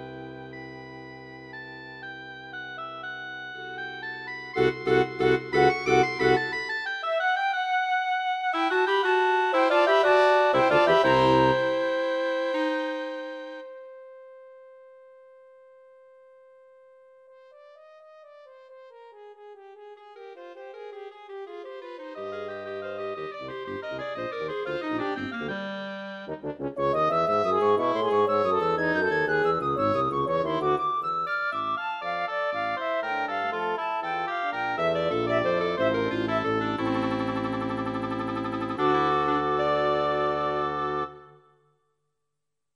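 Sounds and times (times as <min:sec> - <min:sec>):
quintet playing: 0:04.5 - 0:13.7, 0:19.0 - 0:41.4.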